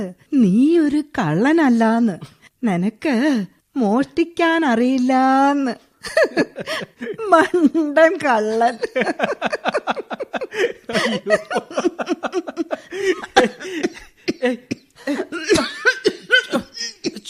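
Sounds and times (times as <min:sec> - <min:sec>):
speech: 0:00.0 - 0:15.7
short laughing sounds: 0:06.0 - 0:17.2
character coughing in a Malayalam radio drama: 0:10.3 - 0:17.2.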